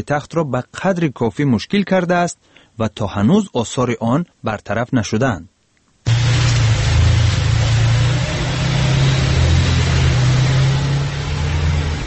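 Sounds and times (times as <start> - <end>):
speech: 0.0 - 5.5
taxi engine drone: 6.1 - 12.0
taxi wheels spinning in snow on a Dushanbe street: 6.1 - 12.0.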